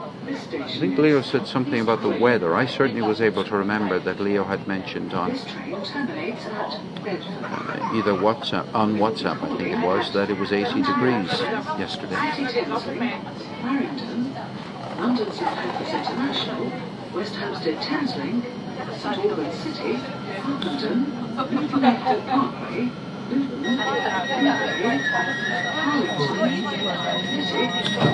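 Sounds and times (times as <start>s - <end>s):
speech: 0.3s - 28.1s
train doors warning sound: 23.7s - 28.1s.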